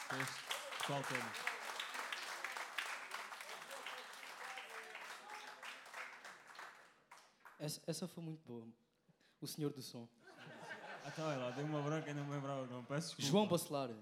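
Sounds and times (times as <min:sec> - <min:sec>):
audience applause: 0:00.0 - 0:07.6
speech: 0:00.1 - 0:01.5, 0:07.6 - 0:08.8, 0:09.4 - 0:14.0
laughter: 0:10.2 - 0:12.8.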